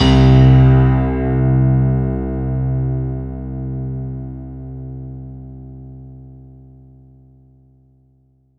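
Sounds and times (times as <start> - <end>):
Roland JV 2080 analog sequence dance synth: 0.0 - 5.4.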